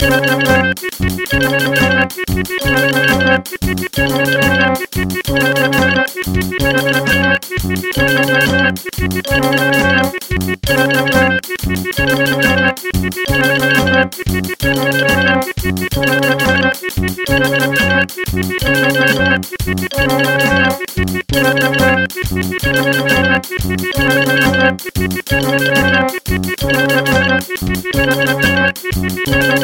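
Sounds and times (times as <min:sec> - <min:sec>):
game boss music: 0:00.0 - 0:29.6.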